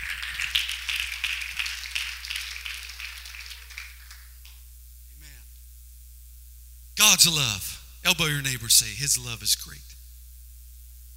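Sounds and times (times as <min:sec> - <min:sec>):
crowd clapping hands: 0:00.0 - 0:04.6
speech: 0:07.2 - 0:09.9.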